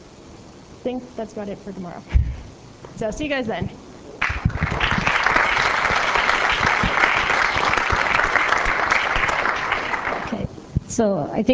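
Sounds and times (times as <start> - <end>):
speech: 0.8 - 3.8, 11.0 - 11.5
audience applause at the end of a session: 4.2 - 10.4.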